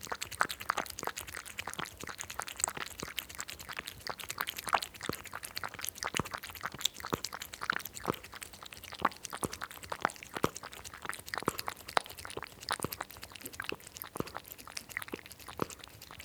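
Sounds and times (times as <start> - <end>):
cat lapping milk: 0.0 - 16.2.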